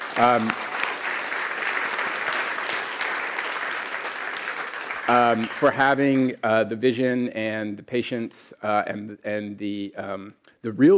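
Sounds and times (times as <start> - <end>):
audience applause: 0.0 - 6.3
speech: 0.2 - 0.7, 5.1 - 10.9.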